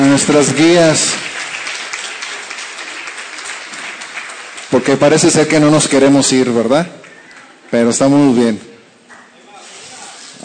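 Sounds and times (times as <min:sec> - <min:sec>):
audience applause: 0:00.0 - 0:08.2
speech: 0:00.2 - 0:01.3, 0:04.7 - 0:07.0, 0:07.7 - 0:08.7.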